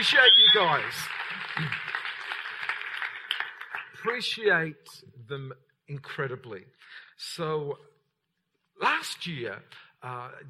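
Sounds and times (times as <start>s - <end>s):
speech: 0.0s - 1.9s, 4.0s - 7.9s, 8.8s - 10.4s
church audience applause: 0.0s - 4.1s.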